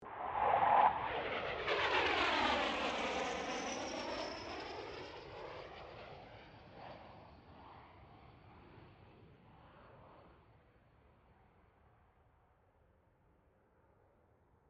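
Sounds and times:
CA-27 Sabre jet aircraft passing: 0.0s - 10.3s.

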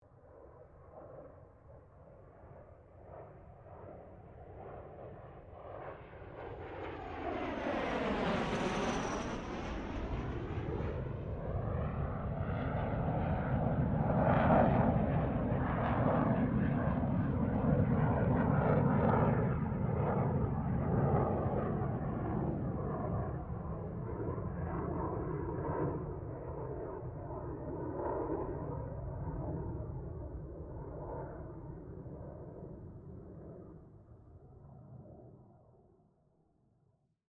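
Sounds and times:
CA-27 Sabre jet aircraft passing: 4.6s - 33.7s.

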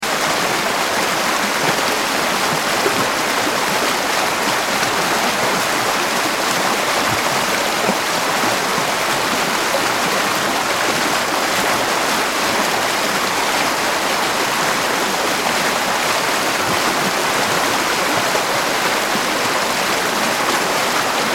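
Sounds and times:
river flowing fast: 0.0s - 21.3s.

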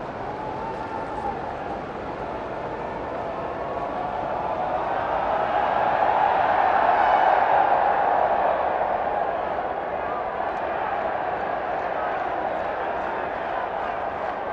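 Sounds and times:
20K crowd doing a Mexican wave at Melbourne Cricket Ground: 0.1s - 14.5s.

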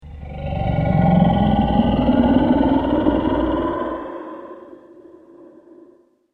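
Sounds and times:
dragon monster sound effect: 0.0s - 5.8s.

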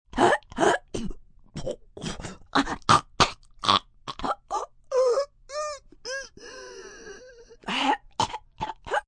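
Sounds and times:
woman choking, panicking, gagging and gasping: 0.1s - 9.0s.

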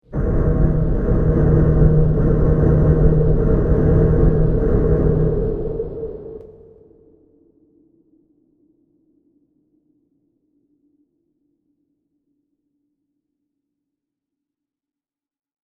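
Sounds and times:
industrial machinery noise: 0.1s - 6.7s.

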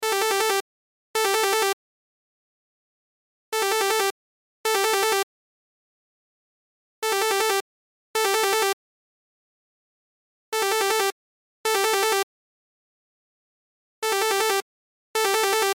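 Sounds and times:
cell phone ringtone: 0.0s - 0.6s, 1.2s - 1.8s, 3.6s - 4.1s, 4.7s - 5.3s, 7.0s - 7.6s, 8.2s - 8.8s, 10.6s - 12.3s, 14.0s - 14.6s, 15.2s - 15.7s.

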